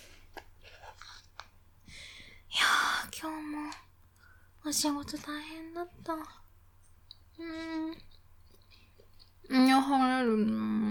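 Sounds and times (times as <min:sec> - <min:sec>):
speech: 0:04.7 - 0:06.4, 0:07.4 - 0:08.1, 0:09.4 - 0:10.8
chewing rice and katsudon pork cutlet rice bowl: 0:07.0 - 0:09.5.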